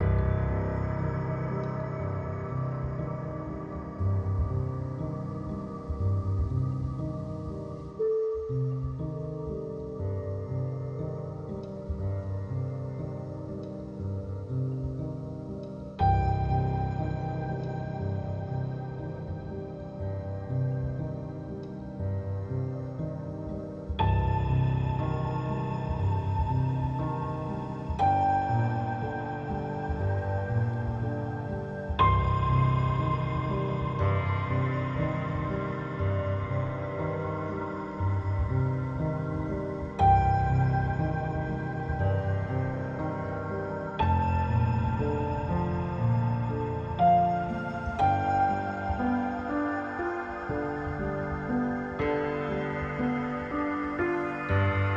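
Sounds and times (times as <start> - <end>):
piano: 0.0 - 54.9.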